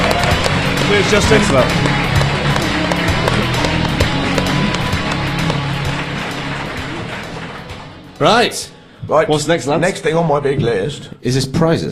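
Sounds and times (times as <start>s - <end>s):
crowd applause: 0.0s - 8.6s
speech: 0.9s - 1.9s, 8.2s - 11.9s.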